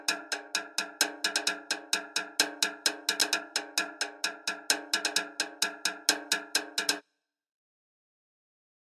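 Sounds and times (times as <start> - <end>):
Latin American cascara rhythm at 130 bpm: 0.0 - 7.0.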